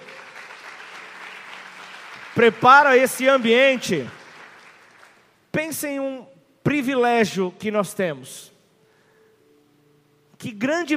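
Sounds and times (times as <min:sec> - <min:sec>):
audience applause: 0:00.0 - 0:05.3
speech: 0:02.4 - 0:04.2, 0:05.5 - 0:08.5, 0:10.4 - 0:10.9.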